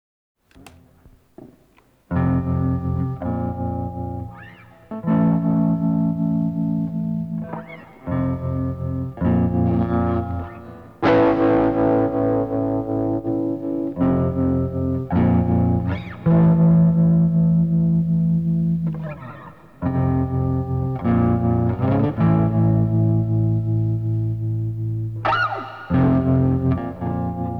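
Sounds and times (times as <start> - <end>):
instrumental music: 0.5 - 27.5.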